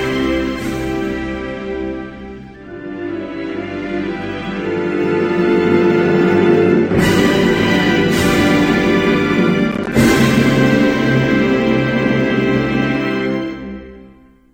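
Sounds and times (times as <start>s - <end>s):
national anthem: 0.0s - 14.4s.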